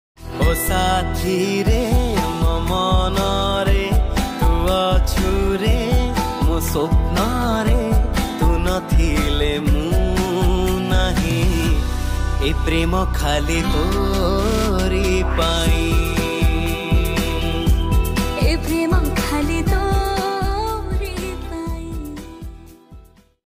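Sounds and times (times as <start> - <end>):
Odia romantic love song ringtone: 0.2 - 23.4.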